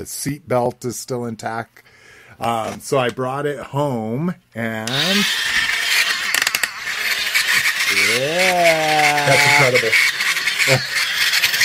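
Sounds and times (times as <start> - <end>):
speech: 0.0 - 5.5, 8.2 - 10.9
toy vehicle's struggling electric motor: 4.8 - 11.6.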